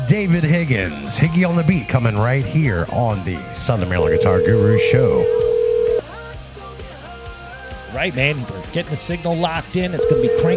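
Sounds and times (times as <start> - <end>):
speech: 0.1 - 5.5, 7.9 - 10.5
telephone dialing tone: 3.9 - 6.0, 10.0 - 10.5.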